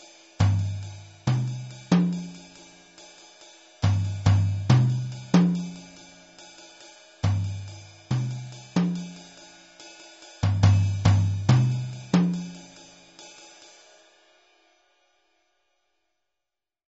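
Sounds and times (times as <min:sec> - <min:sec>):
tom drum melodic sequence: 0:00.4 - 0:02.6, 0:03.8 - 0:06.2, 0:07.2 - 0:09.4, 0:10.4 - 0:12.9.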